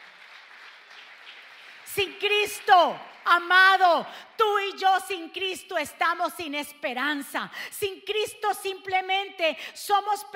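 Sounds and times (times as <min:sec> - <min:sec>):
audience applause: 0:00.0 - 0:01.9
speech: 0:02.0 - 0:10.3.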